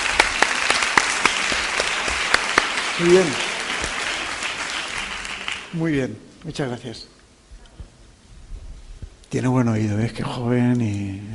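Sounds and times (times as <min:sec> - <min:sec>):
applause from a small group: 0:00.0 - 0:06.0
speech: 0:03.0 - 0:03.4, 0:05.7 - 0:07.1, 0:09.3 - 0:11.3.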